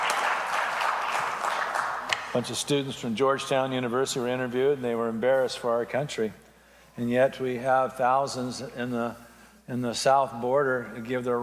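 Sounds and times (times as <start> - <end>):
audience clapping: 0.0 - 2.5
speech: 2.3 - 6.4, 7.0 - 11.4.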